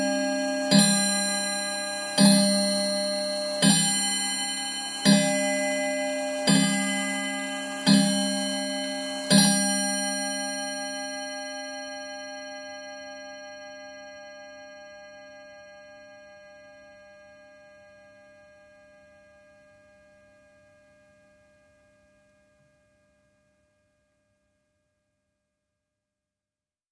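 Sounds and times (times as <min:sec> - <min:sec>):
domestic chiming clock striking twelve: 0:00.0 - 0:13.7.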